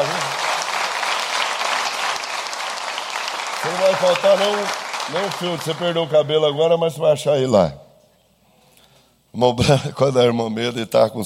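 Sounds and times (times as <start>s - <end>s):
congregation applause during a religious sermon: 0.0s - 7.2s
speech: 3.9s - 7.8s, 9.3s - 11.2s.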